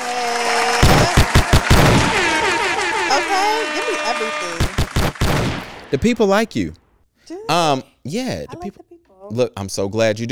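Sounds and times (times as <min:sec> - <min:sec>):
hand claps sound effect: 0:00.0 - 0:06.6
laughter: 0:00.0 - 0:06.7, 0:07.3 - 0:09.0
speech: 0:04.0 - 0:04.7, 0:05.9 - 0:06.8, 0:07.5 - 0:10.3.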